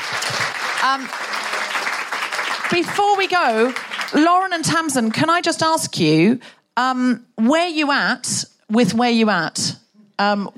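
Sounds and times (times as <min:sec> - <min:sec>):
audience applause: 0:00.0 - 0:04.3
speech: 0:00.8 - 0:01.4, 0:02.7 - 0:10.5.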